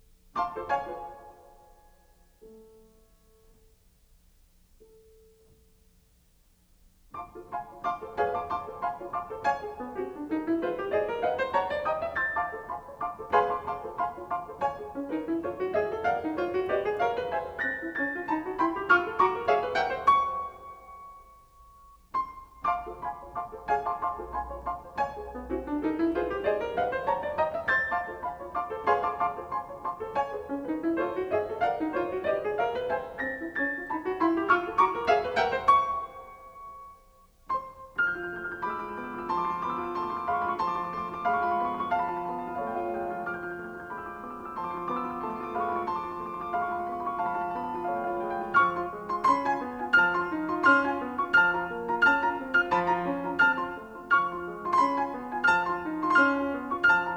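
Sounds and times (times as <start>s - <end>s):
piano piece: 0.0s - 57.1s.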